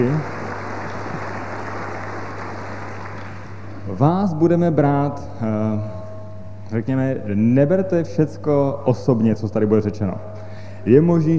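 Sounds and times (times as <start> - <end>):
speech: 0.0 - 0.4, 3.9 - 6.0, 6.7 - 11.3
audience applause: 0.0 - 3.7
low steady hum: 0.1 - 11.3.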